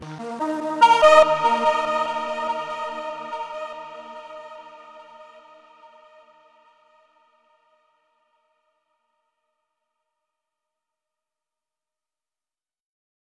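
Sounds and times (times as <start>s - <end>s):
puzzle stinger tone: 0.0s - 5.3s.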